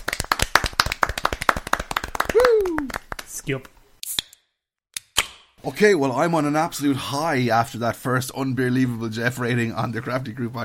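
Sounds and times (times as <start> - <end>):
quick round of applause: 0.0 - 3.4
speech: 3.5 - 3.7, 5.6 - 10.6.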